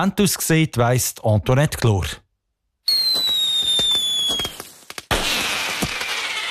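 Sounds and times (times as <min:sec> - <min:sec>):
speech: 0:00.0 - 0:02.2
fireworks rockets whistling upward: 0:02.9 - 0:06.4.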